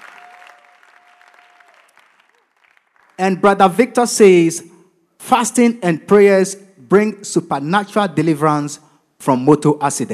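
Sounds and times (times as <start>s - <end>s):
audience applause: 0.0s - 3.3s
speech: 3.2s - 4.7s, 5.3s - 10.1s.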